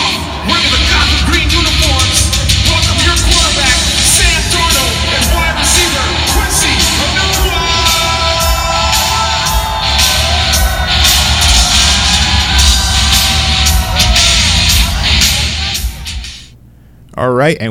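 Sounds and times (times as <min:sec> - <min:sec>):
crowd roaring at a New York Jets uniform reveal event: 0:00.0 - 0:16.3
shouts and whoops: 0:05.2 - 0:15.8
speech: 0:17.3 - 0:17.6.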